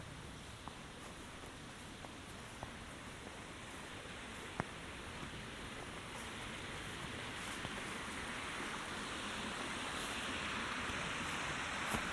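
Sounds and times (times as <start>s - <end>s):
steady outdoor hiss in Michaux State Forest: 0.0s - 12.1s.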